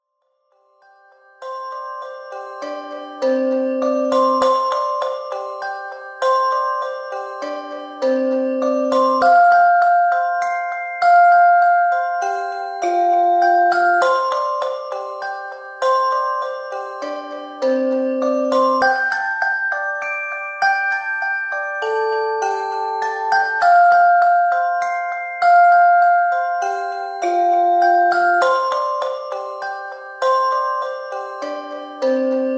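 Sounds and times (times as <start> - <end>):
relaxation music for babies: 0.4 - 32.5.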